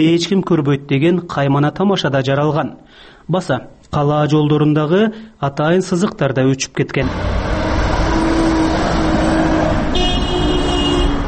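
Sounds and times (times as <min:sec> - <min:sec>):
speech: 0:00.0 - 0:07.6
road traffic at the intersection of Lenin and Gaparaitiev streets in Osh: 0:07.0 - 0:11.2
car horn toot: 0:09.8 - 0:11.2.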